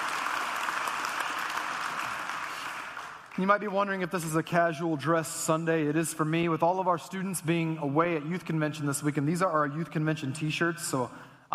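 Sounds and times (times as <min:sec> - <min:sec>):
church congregation applauding to welcome guests: 0:00.0 - 0:04.0
speech: 0:03.4 - 0:11.5.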